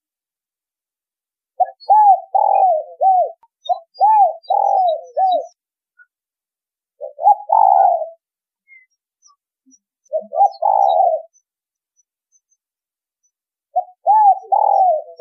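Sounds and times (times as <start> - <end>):
spotted dove cooing: 1.6 - 5.6, 7.0 - 8.8, 10.1 - 11.4, 13.7 - 15.2.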